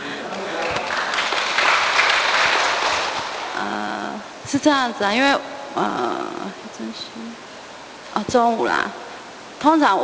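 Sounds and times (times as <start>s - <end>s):
audience applause: 0.0s - 3.6s
speech: 4.5s - 7.5s, 8.2s - 9.0s, 9.6s - 10.0s.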